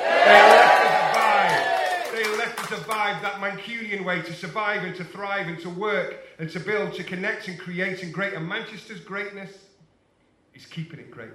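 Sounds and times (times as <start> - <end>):
large crowd roaring and cheering: 0.0 - 3.3
speech: 0.3 - 0.6, 2.7 - 9.7, 10.6 - 11.3.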